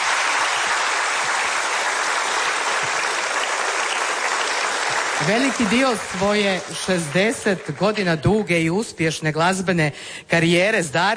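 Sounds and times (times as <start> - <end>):
audience applause in tribute to a late musician: 0.0 - 8.6
speech: 5.2 - 11.1.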